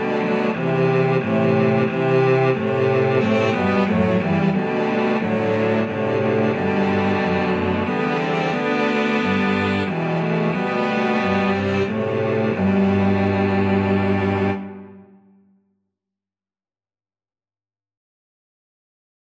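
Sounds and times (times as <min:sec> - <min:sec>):
cello quartet: 0:00.0 - 0:15.2.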